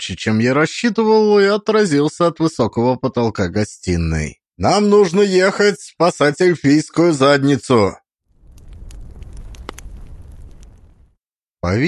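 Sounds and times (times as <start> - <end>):
speech: 0.0 - 8.0, 11.6 - 11.8
burning-down log crackling in a fireplace: 8.3 - 11.2.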